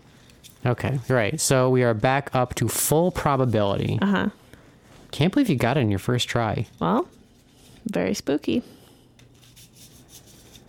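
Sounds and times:
speech: 0.6s - 4.4s, 5.2s - 7.2s, 7.8s - 8.8s
deck of playing cards being shuffled: 9.2s - 10.6s.

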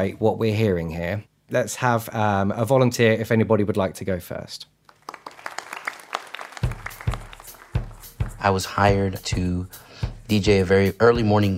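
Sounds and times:
speech: 0.0s - 4.8s, 8.4s - 11.5s
crowd applause: 4.9s - 8.4s.

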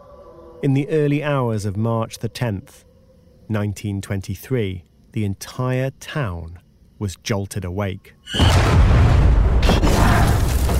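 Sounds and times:
speech: 0.6s - 2.9s, 3.5s - 9.1s
crackling debris: 8.4s - 10.7s
explosion blast: 8.4s - 10.7s.

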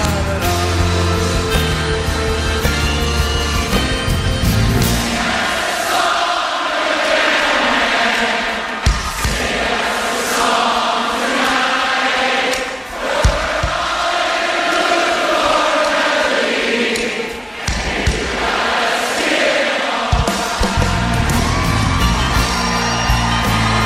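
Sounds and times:
steady music at a live concert: 0.0s - 16.2s, 17.3s - 23.8s
live concert crowd whooping and yelling: 20.1s - 23.8s
audience clapping along with the drumming: 20.8s - 23.8s.

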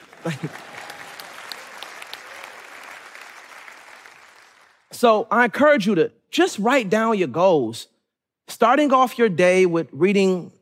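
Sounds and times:
audience clapping: 0.0s - 4.9s
speech: 0.2s - 0.7s, 5.0s - 7.9s, 8.5s - 10.5s.

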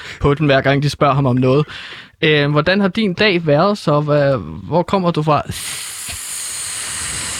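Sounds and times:
speech: 0.2s - 5.8s
person hissing like a snake: 5.4s - 7.3s.

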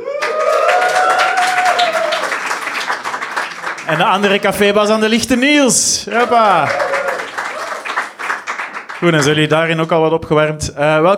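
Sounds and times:
audience applause in a comedy club: 0.0s - 9.7s
speech: 3.9s - 7.0s, 9.0s - 11.1s.

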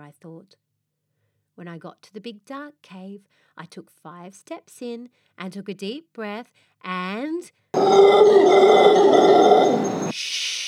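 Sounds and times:
speech: 0.1s - 0.7s, 1.6s - 10.4s
brown bear growling in a cave: 7.8s - 10.1s.

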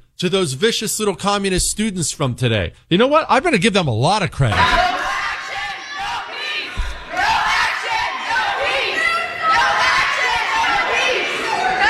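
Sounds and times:
speech: 0.2s - 5.0s
protest crowd shouting and screeching: 4.5s - 11.8s.

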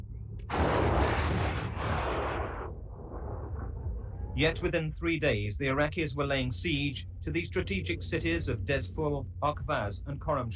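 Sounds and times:
heavy artillery fire: 0.5s - 3.7s
speech: 4.4s - 10.5s.

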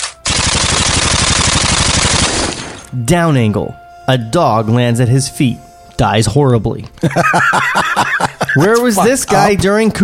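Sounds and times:
Uzi submachine gun firing a burst: 0.0s - 2.9s
speech: 3.0s - 10.0s
laughter: 7.0s - 9.8s.

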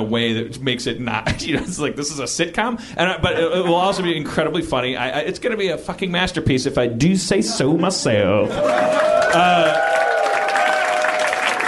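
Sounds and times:
speech: 0.0s - 10.0s
laughter: 3.0s - 4.7s, 7.4s - 10.0s
applause: 8.6s - 11.6s.

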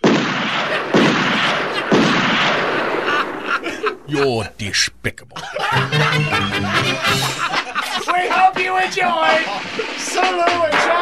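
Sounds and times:
cartoon shotgun blasts: 0.0s - 3.0s
laughter: 2.7s - 4.5s, 5.2s - 10.1s
speech: 4.1s - 11.0s.

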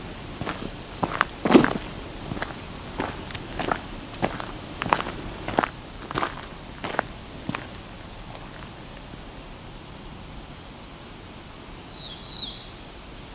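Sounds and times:
crunching footsteps: 0.0s - 8.8s
black-throated blue warbler call: 11.8s - 13.3s.

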